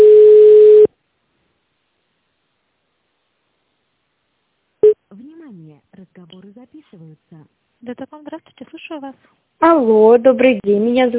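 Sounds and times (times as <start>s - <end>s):
telephone ringback tone while call is transferred to an operator: 0.0s - 0.9s
speech: 6.2s - 11.1s.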